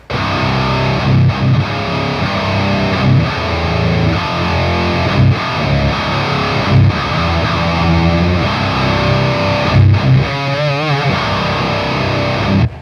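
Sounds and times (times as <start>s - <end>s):
heavily distorted electric bass guitar riff: 0.0s - 12.8s.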